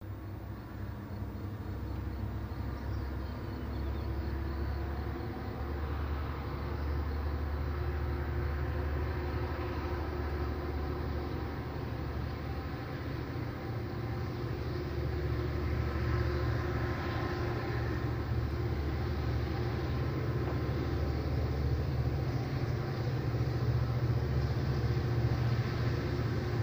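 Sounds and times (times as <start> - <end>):
train passing by at medium speed: 0.0 - 26.6.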